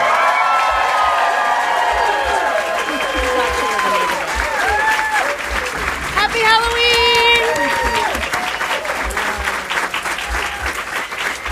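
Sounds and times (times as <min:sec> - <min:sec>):
audience screaming: 0:00.0 - 0:11.5
laughter: 0:00.5 - 0:11.5.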